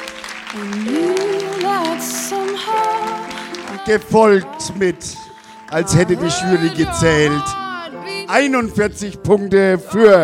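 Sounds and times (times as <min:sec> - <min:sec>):
audience applause: 0:00.0 - 0:07.7
speech: 0:00.5 - 0:01.0, 0:03.9 - 0:07.6, 0:08.3 - 0:10.2.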